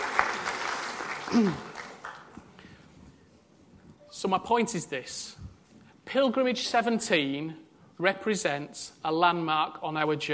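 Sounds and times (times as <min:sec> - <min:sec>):
clapping: 0:00.0 - 0:02.5
speech: 0:01.3 - 0:01.7, 0:04.2 - 0:05.4, 0:06.1 - 0:10.3.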